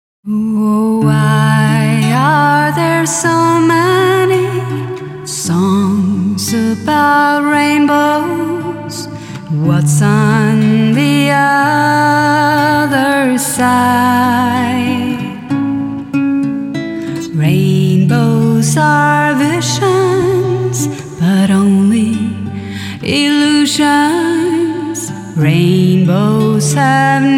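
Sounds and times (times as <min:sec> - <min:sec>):
person singing: 0:00.3 - 0:16.1, 0:16.9 - 0:27.3.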